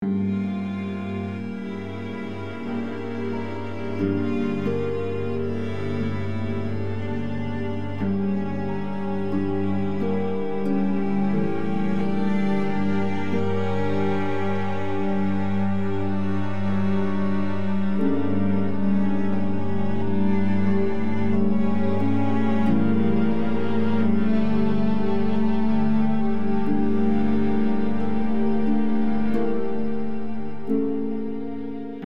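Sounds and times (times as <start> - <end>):
hopeless music loop: 0.0 - 32.0.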